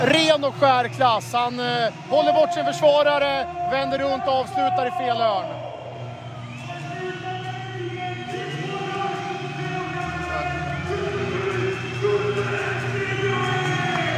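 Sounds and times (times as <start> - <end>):
speech: 0.0 - 5.6
stadium crowd cheering after a goal: 0.0 - 14.1.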